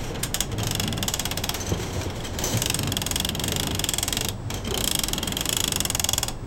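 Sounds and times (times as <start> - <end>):
spinning object creaking: 0.1 - 6.4.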